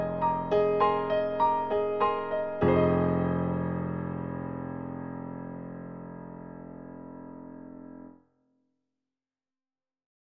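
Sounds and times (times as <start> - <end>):
natural grand piano: 0.0 - 8.2.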